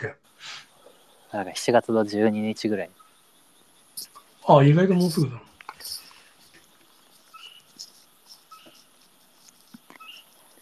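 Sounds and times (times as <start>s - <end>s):
speech: 0.0s - 0.6s, 1.3s - 3.0s, 4.0s - 6.0s
bird calling near a rice field: 2.8s - 10.6s.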